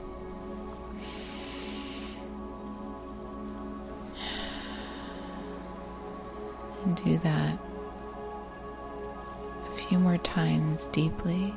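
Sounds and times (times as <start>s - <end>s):
steady sustained tonal background: 0.0s - 11.5s
deep breath in through the nose and out through the mouth: 0.9s - 2.5s, 4.0s - 6.0s
speech: 6.9s - 7.7s, 9.9s - 11.5s.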